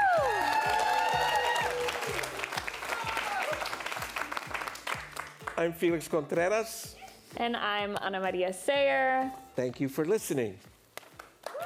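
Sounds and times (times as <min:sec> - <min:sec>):
audience applause and cheering at a live music performance: 0:00.0 - 0:05.8, 0:11.2 - 0:11.6
steady rhythmic music beat: 0:00.0 - 0:11.4
speech: 0:05.6 - 0:10.7.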